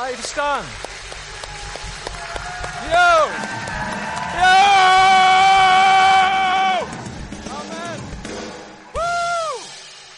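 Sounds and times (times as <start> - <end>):
audience clapping: 0.0 - 7.6
audience cheering: 0.0 - 9.9
speech: 0.1 - 0.9, 2.8 - 4.6.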